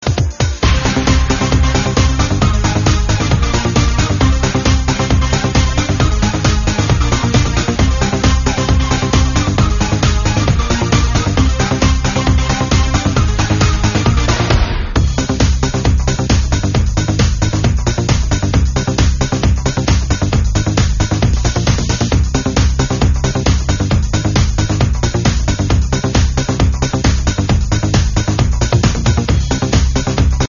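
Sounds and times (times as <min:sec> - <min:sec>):
instrumental music: 0:00.0 - 0:30.4.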